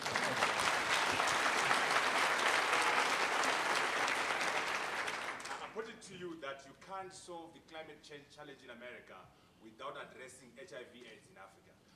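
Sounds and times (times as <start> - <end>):
audience applause: 0.0 - 5.7
speech: 6.4 - 11.8.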